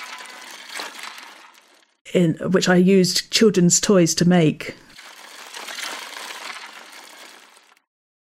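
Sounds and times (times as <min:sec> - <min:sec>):
spinning toy truck wheel whirring: 0:00.0 - 0:02.0, 0:04.9 - 0:07.8
speech: 0:02.1 - 0:04.9.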